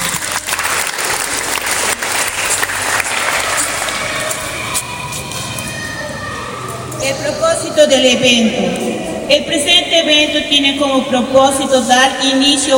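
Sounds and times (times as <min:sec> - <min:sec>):
audience applause: 0:00.0 - 0:05.3
speech: 0:07.8 - 0:12.7.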